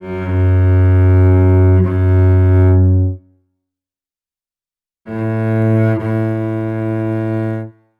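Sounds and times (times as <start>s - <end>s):
Celtic cello music: 0.0s - 3.2s, 5.1s - 7.7s.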